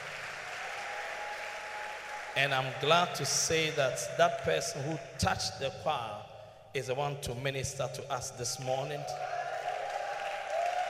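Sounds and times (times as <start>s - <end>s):
audience clapping: 0.0s - 3.0s, 9.3s - 10.8s
speech: 2.4s - 9.4s.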